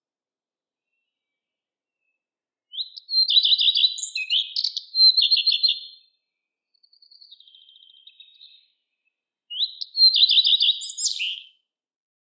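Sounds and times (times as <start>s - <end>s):
lepalind singing in spring: 2.0s - 11.6s.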